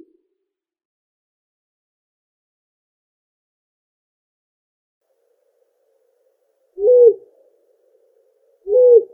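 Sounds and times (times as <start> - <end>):
long-eared owl Asio otus calling: 6.8 - 9.1.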